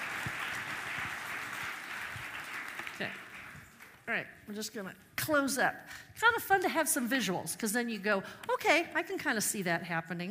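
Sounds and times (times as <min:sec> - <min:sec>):
round of applause: 0:00.0 - 0:04.0
speech: 0:03.0 - 0:03.3, 0:04.1 - 0:10.2.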